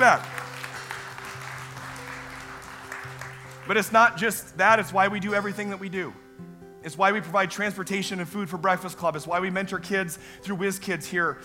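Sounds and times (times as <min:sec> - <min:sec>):
speech: 0:00.0 - 0:00.3, 0:03.7 - 0:11.4
audience applause: 0:00.0 - 0:03.8.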